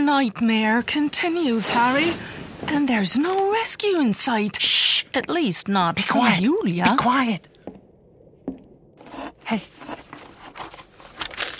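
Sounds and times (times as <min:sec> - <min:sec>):
speech: 0:00.1 - 0:07.5, 0:09.5 - 0:10.0
paper note pushed under a door: 0:09.0 - 0:11.5.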